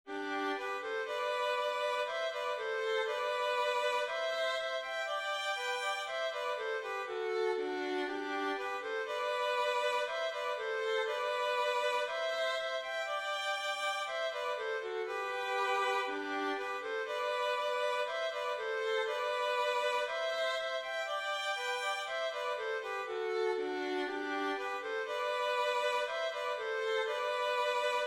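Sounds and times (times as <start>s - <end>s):
melody in G with violin thirds: 0.1s - 28.0s.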